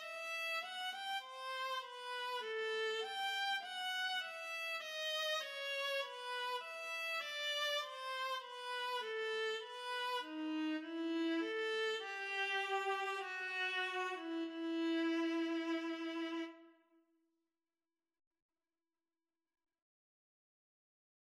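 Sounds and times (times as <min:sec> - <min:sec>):
viola duet playing an aria: 0:00.0 - 0:16.6.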